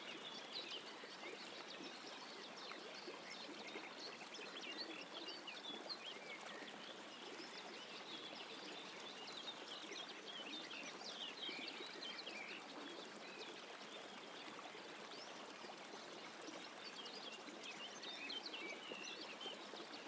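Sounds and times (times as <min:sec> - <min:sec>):
nature sounds: 0:00.0 - 0:20.0.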